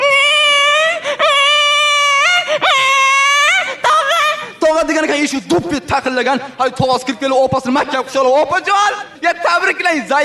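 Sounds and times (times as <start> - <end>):
infant crying: 0.0 - 4.6
speech: 5.3 - 10.2.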